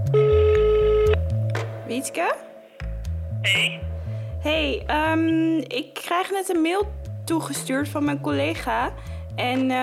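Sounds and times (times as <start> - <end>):
outgoing phone call ringing tone: 0.1 - 1.2
speech: 1.9 - 2.5, 3.4 - 9.8.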